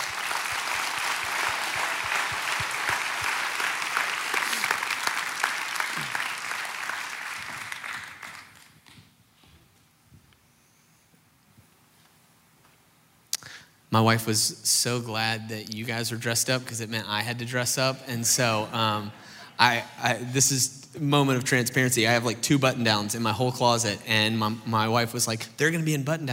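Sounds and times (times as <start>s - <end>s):
church congregation applauding: 0.0s - 9.0s
speech: 14.0s - 26.3s.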